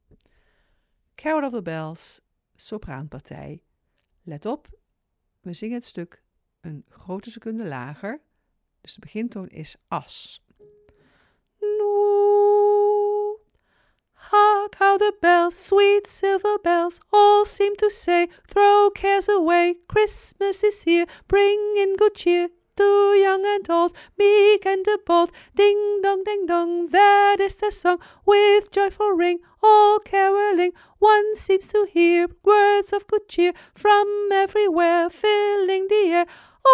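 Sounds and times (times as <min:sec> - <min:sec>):
soprano singing: 0:11.6 - 0:13.5, 0:14.2 - 0:36.7.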